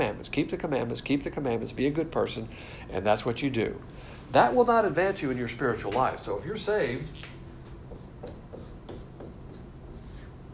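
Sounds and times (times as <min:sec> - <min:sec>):
speech: 0:00.0 - 0:07.4
marker drawing on a board: 0:07.6 - 0:10.5.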